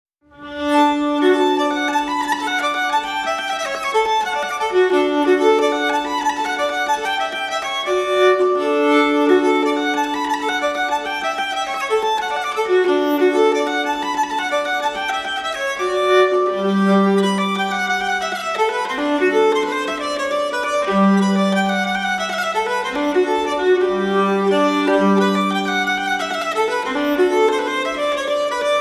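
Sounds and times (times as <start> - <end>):
waltz in C major: 0.5 - 28.7.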